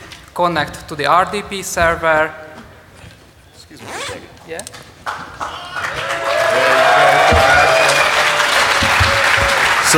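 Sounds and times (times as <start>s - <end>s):
speech: 0.4s - 2.4s, 4.5s - 5.7s
round of applause: 5.0s - 9.9s.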